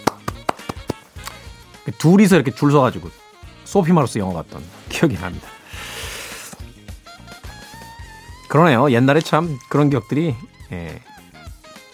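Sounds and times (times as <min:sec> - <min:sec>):
hand clapping: 0:00.0 - 0:01.5
speech: 0:01.8 - 0:05.6, 0:08.5 - 0:11.1.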